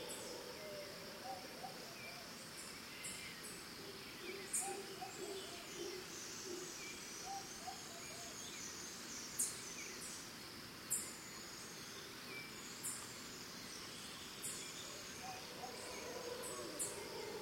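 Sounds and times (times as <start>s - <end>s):
distant monkeys in Costa Rica: 0.0s - 8.4s, 14.4s - 17.4s
birds in Costa Rica: 0.0s - 17.4s
crickets in Costa Rica: 0.0s - 17.4s.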